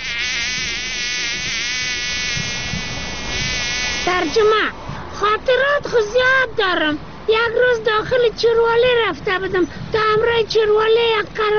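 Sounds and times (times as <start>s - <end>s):
fly buzzing: 0.0s - 4.6s
speech: 4.1s - 11.5s.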